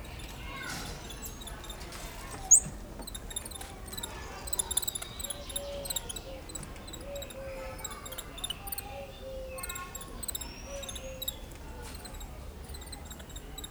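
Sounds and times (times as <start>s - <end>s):
red-handed tamarin calling: 0.0s - 13.6s.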